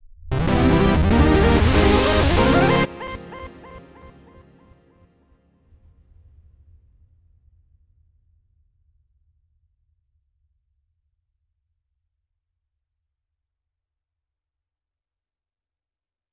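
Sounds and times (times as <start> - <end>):
user interface level clear jingle: 0.3 - 4.6.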